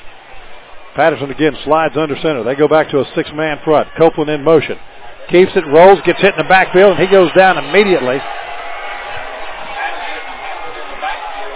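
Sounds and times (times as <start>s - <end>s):
speech: 1.0s - 8.5s
stadium crowd grumbling: 5.5s - 11.5s.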